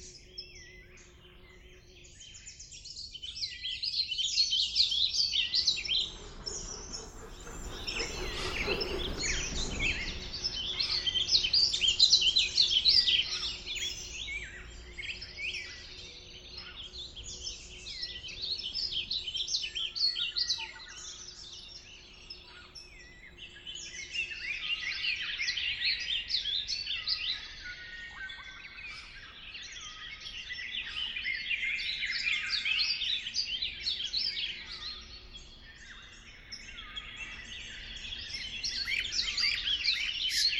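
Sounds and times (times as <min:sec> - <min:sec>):
birds in Klaipeda: 0:00.0 - 0:40.5.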